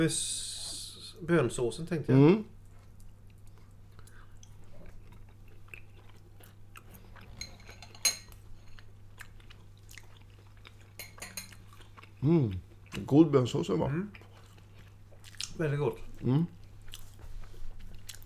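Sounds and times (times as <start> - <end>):
speech: 0.0 - 0.4, 1.2 - 2.5, 12.2 - 14.2, 15.6 - 16.6
chewing: 2.6 - 13.1, 14.1 - 18.2
fork clinking and scraping on a plate: 11.0 - 11.6.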